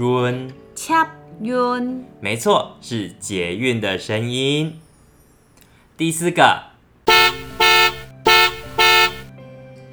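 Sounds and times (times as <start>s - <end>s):
speech: 0.0s - 4.8s, 6.0s - 6.7s
car horn honking: 7.1s - 9.3s.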